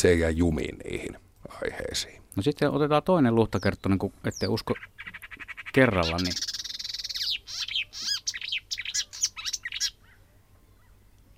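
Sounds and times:
speech: 0.0s - 5.1s, 5.8s - 6.5s
warbler singing: 3.4s - 11.3s
barn swallow calls: 4.4s - 10.2s.

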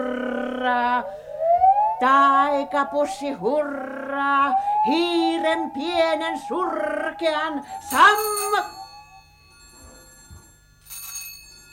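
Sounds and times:
speech: 0.7s - 1.2s, 2.0s - 8.8s
telephone ringing with metallic bell tone: 7.8s - 11.7s.

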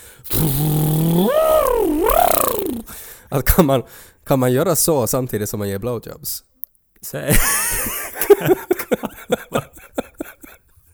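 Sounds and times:
voice imitating a didgeridoo drone: 0.3s - 2.9s
speech: 3.3s - 7.8s, 8.4s - 9.0s
laughter: 7.3s - 10.4s.

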